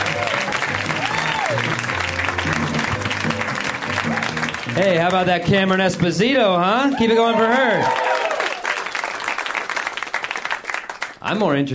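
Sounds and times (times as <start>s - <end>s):
cheers and whoops: 0.0s - 1.9s, 6.8s - 9.1s
large audience applause for a comedian: 0.0s - 11.2s
speech: 4.8s - 8.1s, 11.3s - 11.7s.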